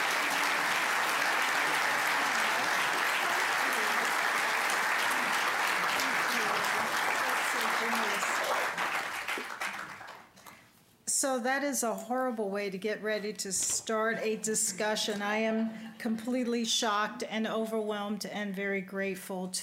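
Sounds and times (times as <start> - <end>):
audience applause at the 2018 Rochelle Award presentation: 0.0 - 10.3
speech: 11.2 - 19.6.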